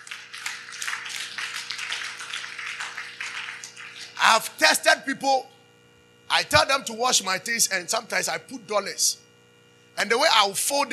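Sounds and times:
hands clapping: 0.0s - 4.2s
speech: 4.2s - 5.6s, 6.3s - 9.3s, 10.0s - 10.9s.

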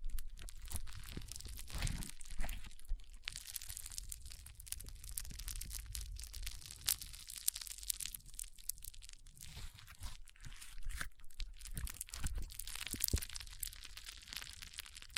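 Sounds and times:
foam squeezed and rubbed, crackling and crunching in a brain massage: 0.0s - 15.1s.

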